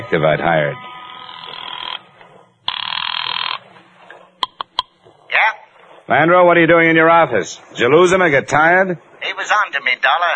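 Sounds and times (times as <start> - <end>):
speech: 0.0 - 0.9, 6.1 - 10.3
telephone bell ringing: 0.7 - 3.6.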